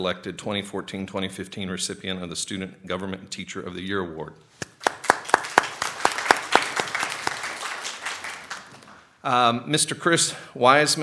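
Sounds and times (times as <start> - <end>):
speech: 0.0 - 5.0, 9.2 - 11.0
round of applause from a group: 4.6 - 9.1.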